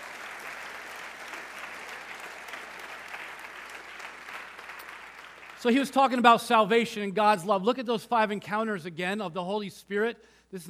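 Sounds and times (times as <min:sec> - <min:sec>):
church audience applauding: 0:00.0 - 0:06.0
speech: 0:05.6 - 0:10.6.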